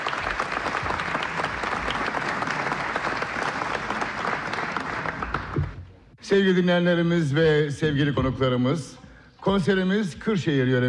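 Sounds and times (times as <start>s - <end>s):
audience applause at an Istanbul Radio Turkish folk music concert: 0.0s - 5.9s
speech: 6.3s - 10.8s.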